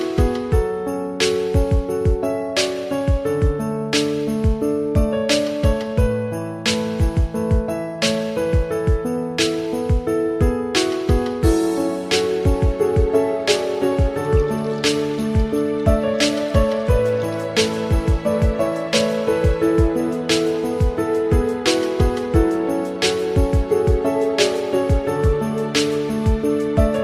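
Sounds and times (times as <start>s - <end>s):
Christmas beat: 0.0s - 27.0s.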